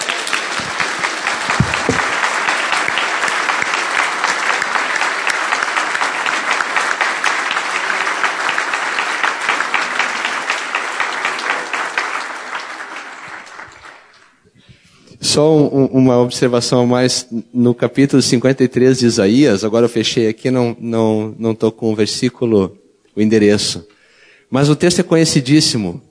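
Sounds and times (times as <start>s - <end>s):
audience applauding: 0.0s - 14.4s
speech: 15.4s - 26.0s.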